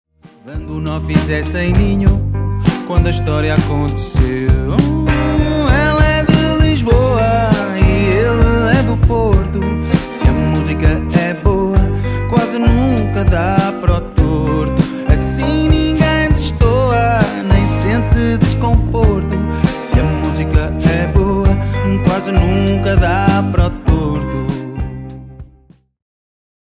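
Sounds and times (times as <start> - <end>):
guitar playing: 0.2 - 25.8.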